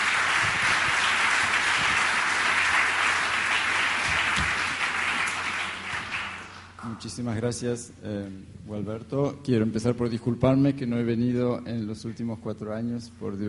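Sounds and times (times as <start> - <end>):
audience applause: 0.0 - 6.8
speech: 7.0 - 13.4.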